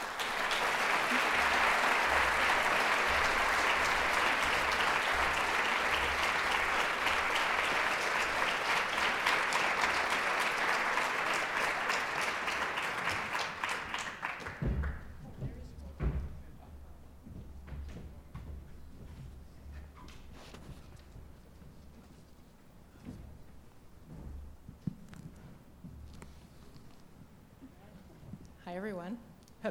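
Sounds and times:
audience applause welcoming artists on stage: 0.0 - 15.4.

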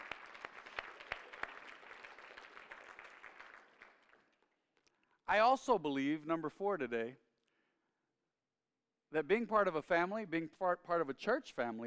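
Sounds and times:
audience applause: 0.0 - 4.4
speech: 5.3 - 7.2, 9.1 - 11.8.

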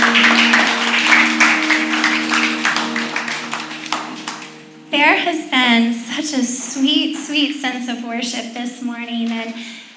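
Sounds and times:
audience applause: 0.0 - 4.8
speech: 5.2 - 9.8.

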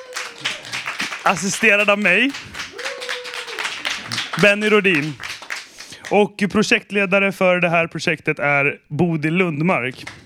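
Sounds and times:
audience applause: 0.0 - 6.1, 10.0 - 10.2
speech: 1.2 - 2.6, 4.4 - 5.2, 6.1 - 10.2.

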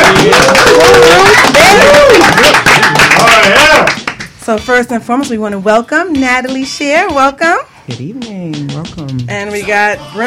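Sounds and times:
studio audience whooping and shouting: 0.0 - 3.8
studio audience clapping: 0.0 - 4.4
speech: 4.5 - 10.2.

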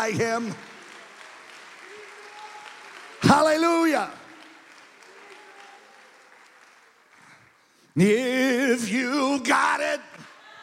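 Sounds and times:
speech: 0.0 - 0.7, 3.3 - 4.2, 8.0 - 10.1
audience clapping: 0.0 - 10.6.

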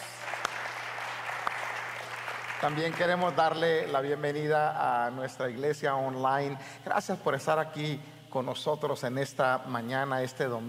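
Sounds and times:
audience applause: 0.0 - 3.6
speech: 2.6 - 10.6.

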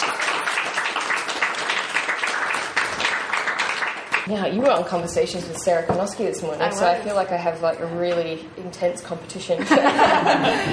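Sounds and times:
writers' festival audience applause welcoming an author: 0.0 - 4.3
speech: 4.3 - 10.7
laughter: 9.6 - 10.7.

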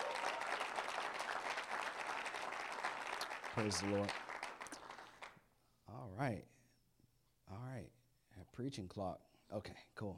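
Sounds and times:
audience applause: 0.0 - 5.3
speech: 3.6 - 4.2, 6.2 - 6.6, 7.5 - 10.1.

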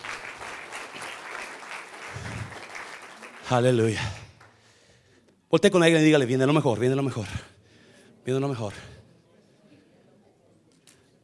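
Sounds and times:
audience applauding in church: 0.0 - 4.7
speech: 3.5 - 4.2, 5.5 - 7.5, 8.2 - 8.9.

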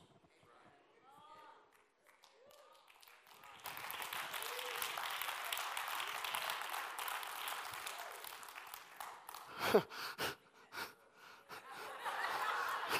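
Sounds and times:
audience clapping: 1.7 - 10.2, 12.4 - 12.9
laughter: 9.5 - 12.9.

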